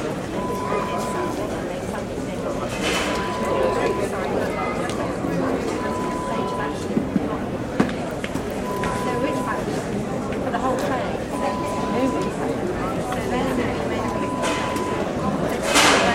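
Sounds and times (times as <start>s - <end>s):
airport departure lounge ambience: 0.0s - 16.1s.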